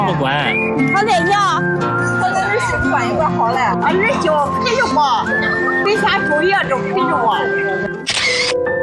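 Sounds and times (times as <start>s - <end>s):
speech: 0.1s - 8.7s
camera shutter taking a group photo: 8.0s - 8.6s.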